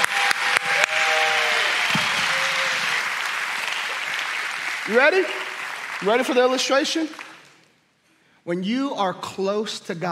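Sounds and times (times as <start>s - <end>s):
audience applause: 0.0s - 7.4s
speech: 4.9s - 7.2s, 8.4s - 10.1s.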